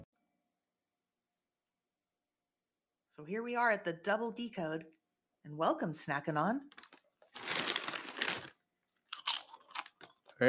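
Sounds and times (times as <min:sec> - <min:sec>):
speech: 0:03.2 - 0:06.9
chewing organic sea salt potato chips: 0:06.7 - 0:10.4.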